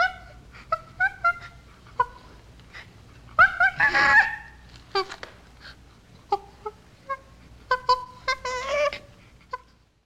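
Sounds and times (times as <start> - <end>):
chimpanzee whimpering: 0.0 - 5.2, 6.2 - 9.8
chimpanzee shrill scream: 3.4 - 4.6.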